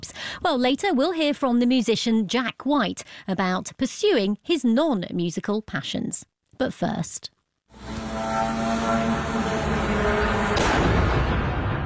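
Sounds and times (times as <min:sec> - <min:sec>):
speech: 0:00.4 - 0:08.6
Russian drone engine buzzing: 0:07.7 - 0:11.7
drone crashing into apartment block: 0:07.8 - 0:11.8.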